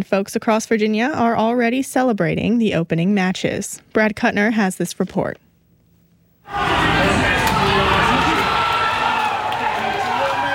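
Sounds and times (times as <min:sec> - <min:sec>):
speech: 0:00.0 - 0:05.4
fans cheering Mexico's first goal of the 2026 World Cup: 0:06.5 - 0:10.5.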